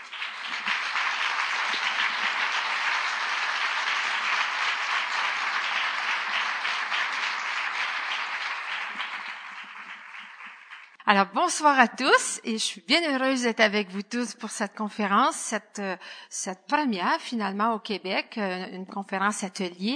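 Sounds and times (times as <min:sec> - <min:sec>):
audience applause welcoming a speaker to a communication conference in Québec: 0:00.0 - 0:11.0
speech: 0:11.1 - 0:19.9.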